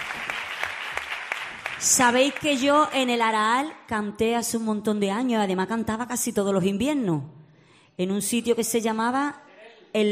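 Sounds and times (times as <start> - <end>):
audience applause at a live singing event: 0.0 - 2.9
speech: 1.8 - 7.4, 8.0 - 10.0.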